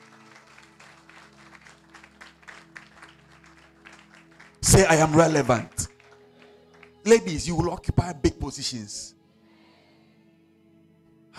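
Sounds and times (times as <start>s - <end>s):
audience clapping: 0.0s - 7.8s
speech: 4.8s - 5.8s, 7.1s - 9.2s.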